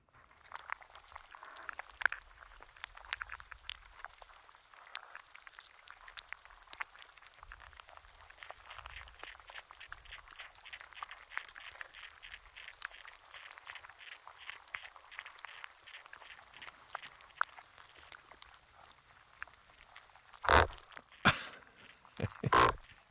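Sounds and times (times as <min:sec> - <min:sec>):
underwater crackles and clicks inside a sea anemone's mouth: 0:00.1 - 0:23.1
rough thumping bursts: 0:20.4 - 0:20.8.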